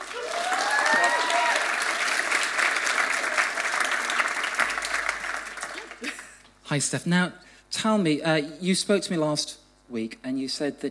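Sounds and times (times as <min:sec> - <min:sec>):
audience applause: 0:00.0 - 0:06.3
speech: 0:06.7 - 0:10.8.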